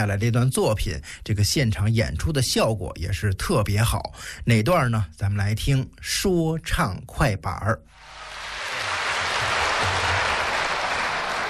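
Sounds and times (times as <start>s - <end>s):
speech: 0.0s - 8.2s
large audience applause: 8.0s - 11.4s.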